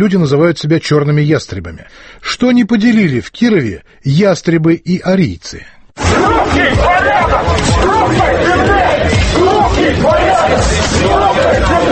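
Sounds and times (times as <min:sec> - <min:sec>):
speech: 0:00.0 - 0:11.9
loud yells: 0:06.0 - 0:11.9
noisy crowd shouting at a street march: 0:06.0 - 0:11.9.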